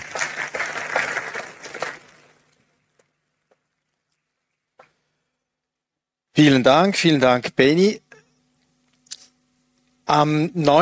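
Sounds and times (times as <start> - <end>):
audience applause: 0.0 - 2.4
speech: 6.4 - 8.0, 10.1 - 10.8.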